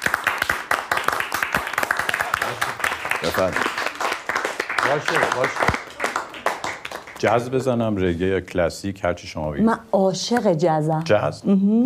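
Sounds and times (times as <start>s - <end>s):
crowd clapping in honour of a music teacher at a birthday gathering: 0.0s - 7.9s
speech: 3.2s - 3.8s, 4.8s - 5.8s, 7.2s - 11.8s.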